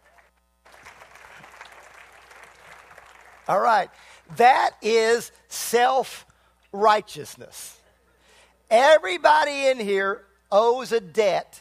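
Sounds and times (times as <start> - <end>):
audience clapping: 0.0 - 3.9
speech: 3.5 - 7.8, 8.7 - 11.6.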